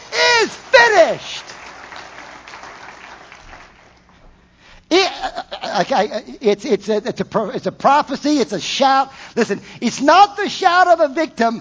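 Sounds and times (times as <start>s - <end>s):
person speaking loudly: 0.0s - 1.4s, 4.9s - 11.5s
congregation clapping during a church sermon: 0.0s - 4.2s
speech: 0.4s - 1.5s, 5.8s - 11.5s.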